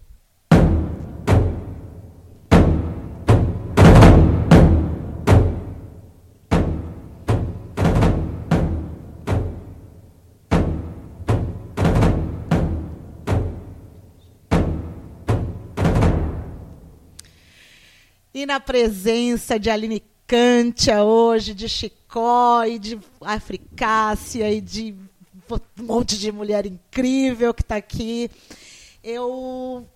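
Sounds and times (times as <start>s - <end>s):
drum being played: 0.5s - 16.8s
speech: 18.4s - 29.9s.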